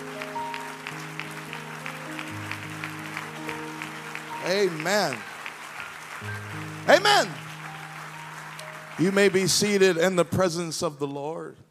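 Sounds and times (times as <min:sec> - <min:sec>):
audience clapping hands: 0:00.0 - 0:10.9
speech: 0:04.4 - 0:05.3, 0:06.2 - 0:07.4, 0:09.0 - 0:11.6.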